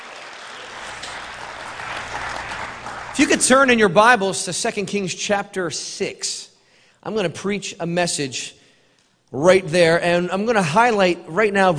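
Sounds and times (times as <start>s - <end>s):
congregation clapping hands in praise during a church service: 0.0s - 4.0s
speech: 3.2s - 8.6s, 9.3s - 11.7s.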